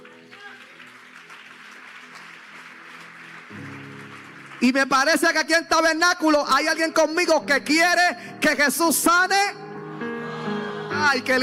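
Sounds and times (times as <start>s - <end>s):
audience applause: 0.0s - 5.5s
speech: 4.6s - 9.6s, 11.0s - 11.4s.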